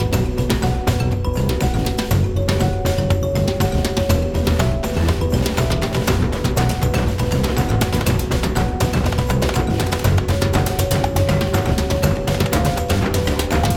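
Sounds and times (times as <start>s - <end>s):
bass: 0.0s - 13.7s
percussion: 0.0s - 13.7s.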